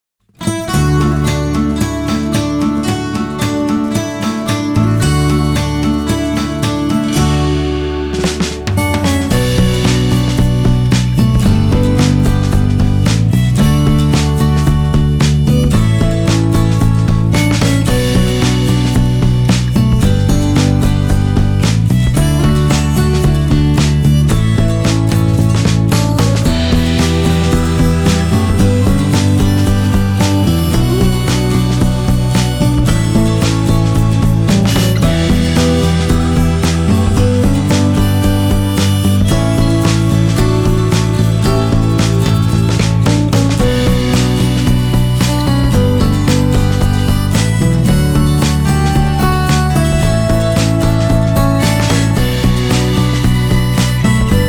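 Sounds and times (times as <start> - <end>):
restaurant music: 0.5 - 54.4.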